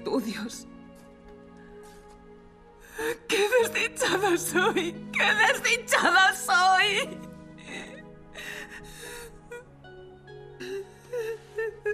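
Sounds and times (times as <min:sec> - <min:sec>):
speech: 0:00.2 - 0:00.8, 0:03.0 - 0:07.3
woman crying in distress: 0:02.9 - 0:09.8, 0:10.6 - 0:11.9.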